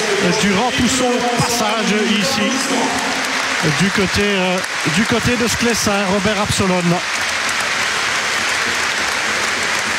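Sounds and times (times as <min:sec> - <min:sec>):
stadium crowd applauding: 0:00.0 - 0:09.9
speech: 0:00.2 - 0:07.3.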